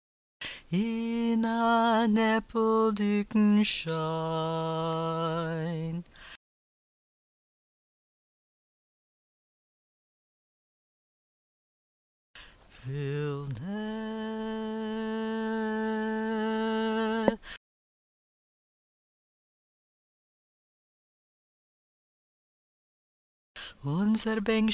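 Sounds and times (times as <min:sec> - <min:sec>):
tenor singing verses and refrain: 0:00.7 - 0:06.1, 0:12.7 - 0:17.6, 0:23.7 - 0:24.7.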